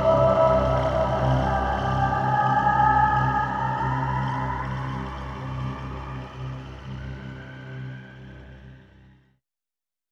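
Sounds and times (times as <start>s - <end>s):
low complex voice: 0.0s - 6.4s.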